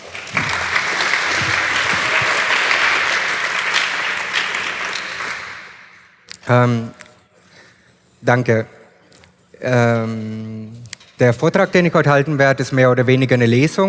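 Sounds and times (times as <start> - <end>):
audience applause: 0.0 - 6.0
speech: 6.5 - 7.0, 8.2 - 8.8, 9.6 - 13.8.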